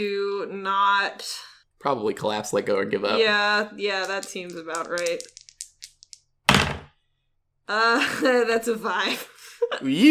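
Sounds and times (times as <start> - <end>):
speech: 0.0 - 5.4, 7.7 - 10.0
dice rolling on a table: 4.0 - 6.9.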